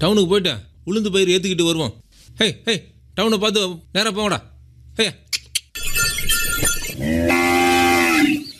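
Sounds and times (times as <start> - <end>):
speech: 0.0 - 5.2
cattle pulling a bullock cart mooing: 6.9 - 8.4.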